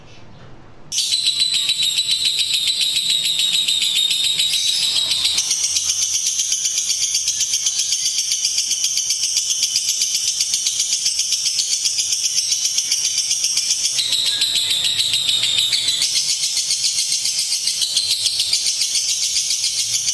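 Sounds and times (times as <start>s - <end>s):
lovebird chattering: 0.9s - 20.1s.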